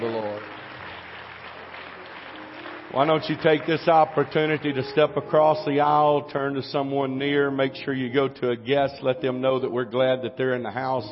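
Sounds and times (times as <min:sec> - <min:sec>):
audience applause: 0:00.0 - 0:05.2
speech: 0:02.9 - 0:11.1.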